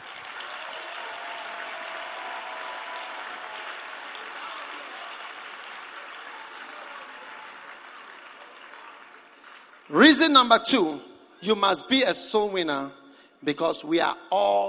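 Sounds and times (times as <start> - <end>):
audience clapping: 0.0 - 10.8
speech: 9.9 - 14.6.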